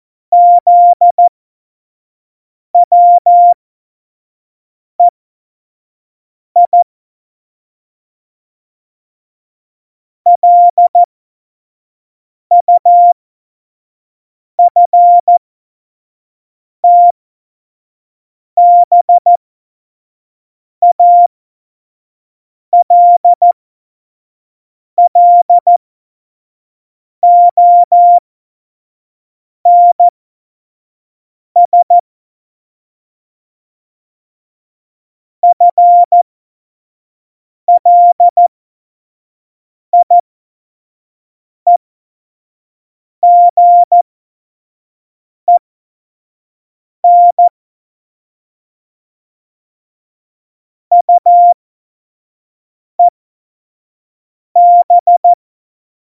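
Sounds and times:
Morse code course beeps: 0.4 - 1.3, 2.8 - 3.6, 6.6 - 6.8, 10.3 - 11.1, 12.5 - 13.1, 14.7 - 15.4, 16.8 - 17.1, 18.6 - 19.3, 20.8 - 21.3, 22.8 - 23.4, 25.0 - 25.8, 27.2 - 28.2, 29.7 - 30.1, 31.6 - 32.0, 35.4 - 36.2, 37.7 - 38.5, 40.0 - 40.2, 43.2 - 44.0, 47.0 - 47.5, 50.9 - 51.6, 54.6 - 55.4.

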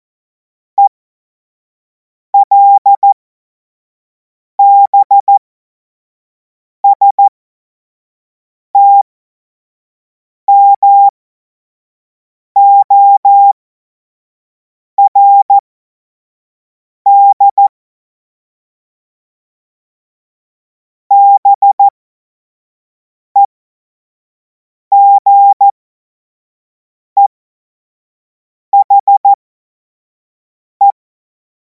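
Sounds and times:
CW Morse code beeps: 2.4 - 3.2, 4.6 - 5.4, 6.8 - 7.3, 8.8 - 9.0, 10.5 - 11.1, 12.6 - 13.6, 15.0 - 15.6, 17.1 - 17.7, 21.1 - 21.9, 24.9 - 25.8, 28.8 - 29.4.

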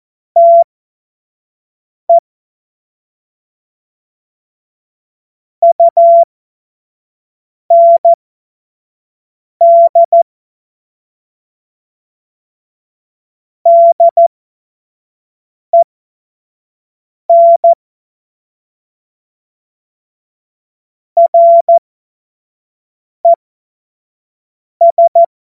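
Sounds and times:
CW Morse code beeps: 0.4 - 0.6, 5.6 - 6.3, 7.7 - 8.2, 9.6 - 10.2, 13.7 - 14.2, 17.3 - 17.8, 21.2 - 21.8, 24.8 - 25.3.

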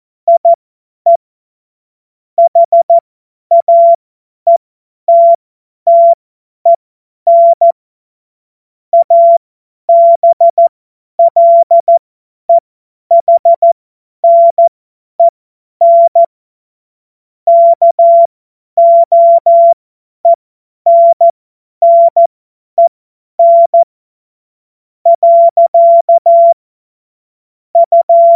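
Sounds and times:
CW Morse code beeps: 0.3 - 1.2, 2.4 - 6.2, 7.3 - 7.8, 9.0 - 12.0, 13.1 - 16.3, 17.5 - 23.9, 25.1 - 26.6, 27.8 - 28.3.

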